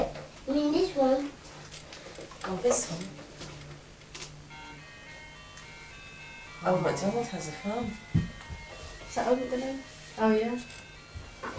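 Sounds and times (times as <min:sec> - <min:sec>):
speech: 0:02.6 - 0:03.2, 0:06.6 - 0:08.3, 0:09.2 - 0:10.8
toy tractor playing a tune: 0:04.5 - 0:11.5.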